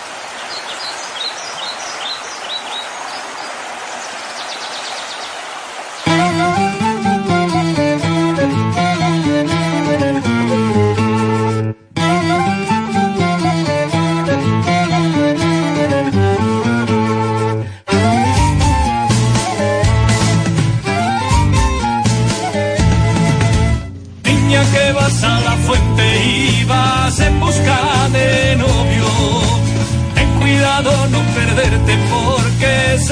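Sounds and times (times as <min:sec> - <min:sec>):
birds chirping: 0:00.0 - 0:06.2
traditional Spanish folk song with rich sustained notes and steady beat: 0:06.0 - 0:33.0.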